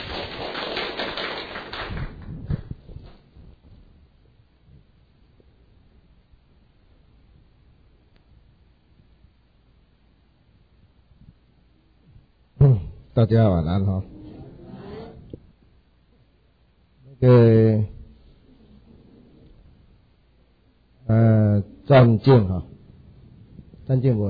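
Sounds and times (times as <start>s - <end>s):
audience applause: 0.0s - 2.6s
speech: 13.2s - 14.2s, 17.2s - 17.9s, 21.9s - 22.7s, 23.9s - 24.2s.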